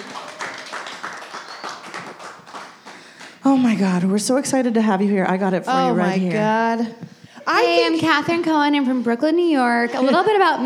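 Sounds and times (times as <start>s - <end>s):
audience clapping as a comedian comes on stage at a stand-up show: 0.0s - 4.0s
speech: 3.4s - 10.6s.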